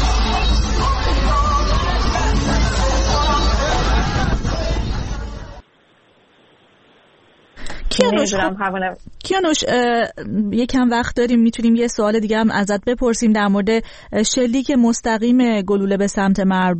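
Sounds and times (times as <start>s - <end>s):
crowd celebrating in Zanjan streets after team loss: 0.0s - 5.6s
speech: 8.0s - 16.7s.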